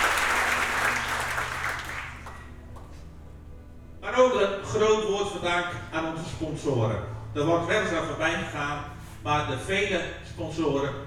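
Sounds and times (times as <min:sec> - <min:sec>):
applause: 0:00.0 - 0:03.0
speech: 0:04.4 - 0:11.0.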